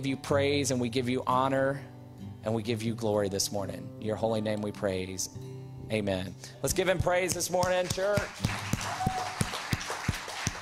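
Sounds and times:
speech: 0.0 - 9.0
hand claps into a microphone: 7.0 - 10.5.

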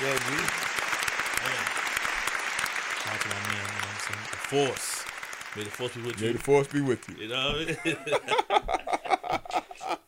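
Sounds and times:
round of applause: 0.0 - 7.8
speech: 4.1 - 4.9, 5.6 - 9.6
laughter: 5.9 - 10.0.

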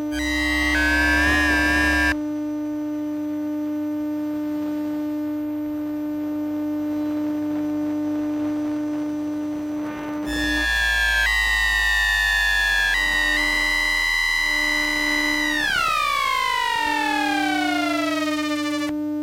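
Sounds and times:
wobbling whining electromagnetic tones: 0.2 - 2.2, 9.2 - 18.9
buzzing electromagnetic hum from tram number 13 in Oslo: 0.2 - 2.4, 3.2 - 19.0.

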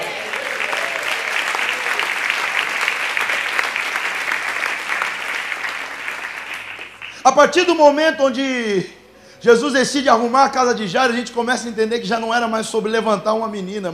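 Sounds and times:
audience applause: 0.0 - 7.2
speech: 7.3 - 13.9.

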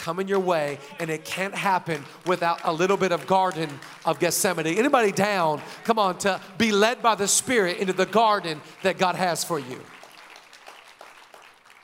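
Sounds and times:
speech: 0.0 - 10.0
audience clapping: 0.0 - 11.8.

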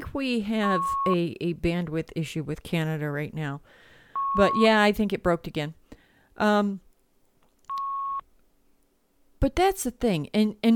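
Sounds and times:
speech: 0.2 - 3.8, 4.4 - 5.8, 6.4 - 6.8, 9.4 - 10.7
buzzy low beep on a phone call line: 0.7 - 1.2, 4.2 - 4.7
high pure tone on a phone call line: 0.7 - 1.2, 4.2 - 4.8.

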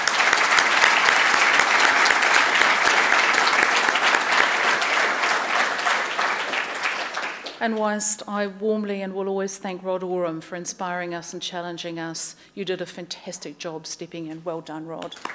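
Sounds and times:
audience applause: 0.0 - 7.6, 15.1 - 15.3
speech: 7.6 - 15.3.

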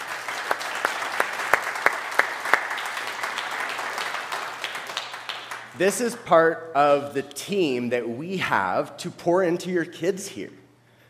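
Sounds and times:
audience applauding: 0.0 - 5.9
speech: 5.8 - 10.6.

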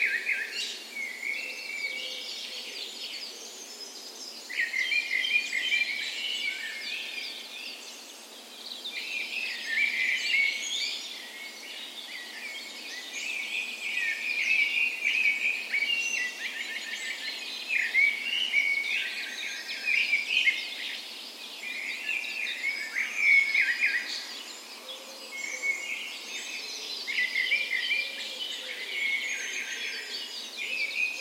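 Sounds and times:
dawn chorus of mixed birds: 0.0 - 31.1.

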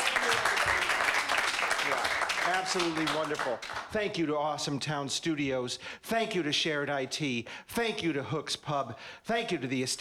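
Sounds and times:
audience applause: 0.0 - 3.9
speech: 2.6 - 9.9.

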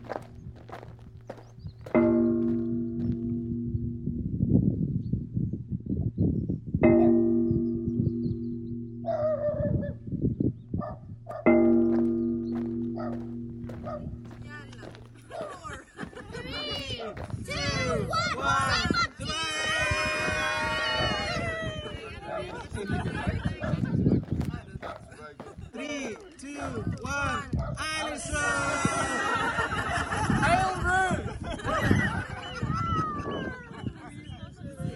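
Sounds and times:
steady low hum with layered tones in the bay of Camas Tuath: 0.0 - 15.6
laughter: 14.8 - 26.9, 28.3 - 34.8.

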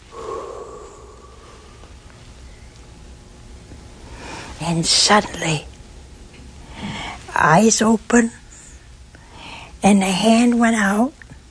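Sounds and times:
voice imitating life being breathed into a lifeless figure: 0.0 - 1.9
speech: 4.6 - 5.7, 7.4 - 8.4, 9.8 - 11.2.

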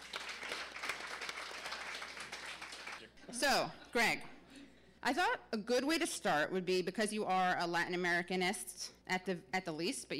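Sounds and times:
audience applause: 0.0 - 3.0
speech: 3.2 - 4.3, 5.0 - 10.1.

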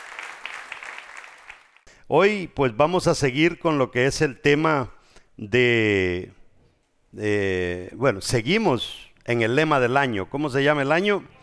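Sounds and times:
audience applause: 0.0 - 1.8
speech: 2.1 - 6.4, 7.1 - 11.4.

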